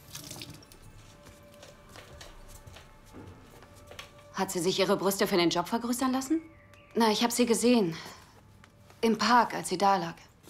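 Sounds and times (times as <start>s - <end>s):
water being poured: 0.0s - 0.9s
speech: 4.4s - 8.2s, 9.0s - 10.3s.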